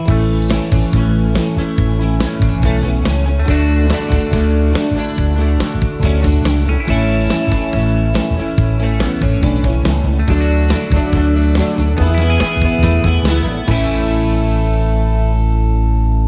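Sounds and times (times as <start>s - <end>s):
pop jingle: 0.1s - 16.1s.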